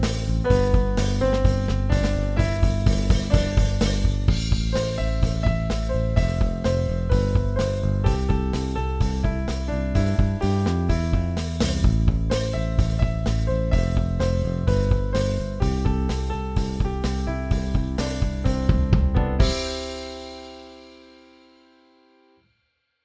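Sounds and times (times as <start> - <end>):
bass guitar: 0.0 - 20.7.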